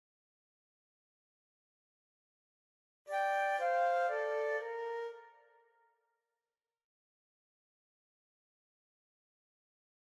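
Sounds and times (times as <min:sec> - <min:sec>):
flute: 0:03.1 - 0:06.0.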